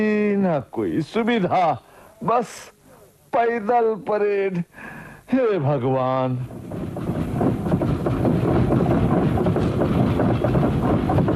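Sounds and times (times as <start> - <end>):
speech: 0.0 - 7.1
train rumble and clatter at a railway station: 6.4 - 11.3.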